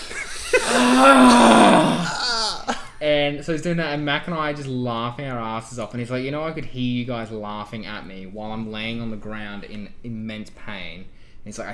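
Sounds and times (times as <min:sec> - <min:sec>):
voice imitating cartoon character's wheezy breathing: 0:00.4 - 0:02.8
speech: 0:03.0 - 0:11.7.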